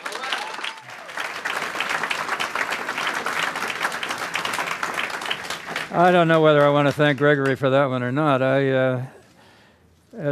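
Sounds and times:
audience applause welcoming a debate moderator and two Los Angeles mayoral candidates: 0.0s - 7.6s
speech: 5.9s - 9.2s.

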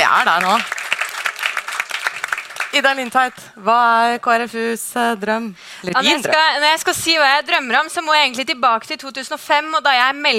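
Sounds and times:
audience applause: 0.0s - 3.3s
speech: 0.1s - 0.8s, 2.8s - 10.3s.

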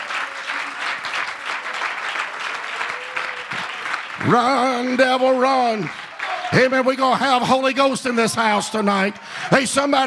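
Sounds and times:
audience clapping in praise: 0.0s - 8.2s
speech: 4.2s - 10.0s.

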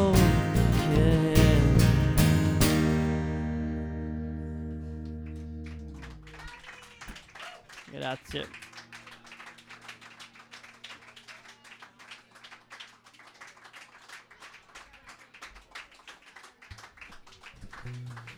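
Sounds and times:
low steady hum: 0.0s - 6.4s
audience applause: 5.7s - 18.3s
speech: 8.0s - 8.6s.

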